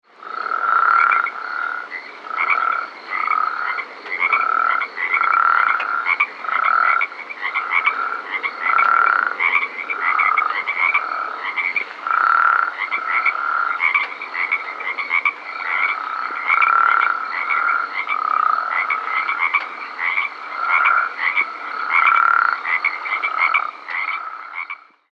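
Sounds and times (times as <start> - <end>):
Spea hammondii calling: 0.2 - 25.0.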